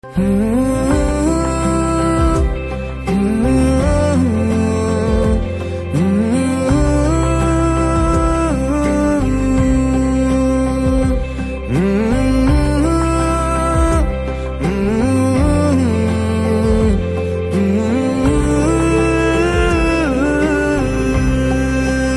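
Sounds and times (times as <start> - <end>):
person humming: 0.2 - 22.1.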